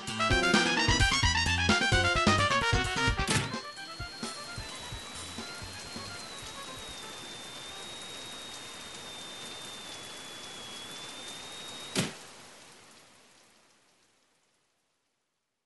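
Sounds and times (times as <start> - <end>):
MIDI jazz music: 0.0 - 3.4.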